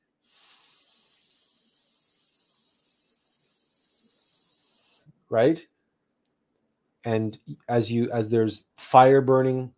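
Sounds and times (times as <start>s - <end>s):
voice making a steady sss hiss during pranayama breathing practice: 0.2s - 5.1s
speech: 5.3s - 5.7s, 7.0s - 9.7s.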